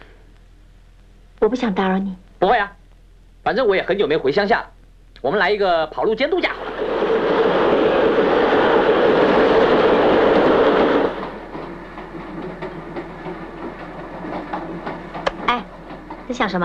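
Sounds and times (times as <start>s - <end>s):
speech: 1.4s - 2.8s, 3.4s - 6.7s, 16.3s - 16.6s
train clattering along the rails: 6.5s - 16.6s.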